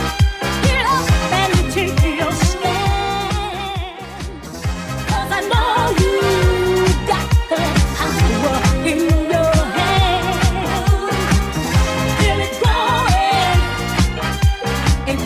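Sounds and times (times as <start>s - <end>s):
80s style 135 bpm electronic beat: 0.0s - 15.2s.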